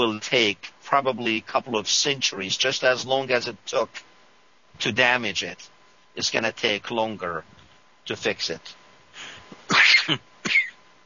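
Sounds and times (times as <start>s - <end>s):
speech: 0.0s - 4.1s, 4.8s - 10.7s
sneeze into microphone: 9.6s - 10.8s.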